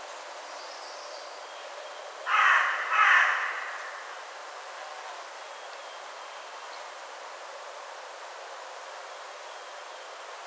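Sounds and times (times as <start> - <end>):
Carrion crow Corvus corone cawing: 2.3 - 4.2.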